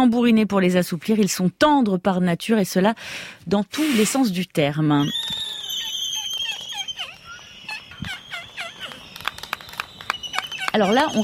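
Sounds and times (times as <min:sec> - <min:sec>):
speech: 0:00.0 - 0:05.5, 0:10.8 - 0:11.2
albatross squeals in courtship: 0:05.0 - 0:11.2.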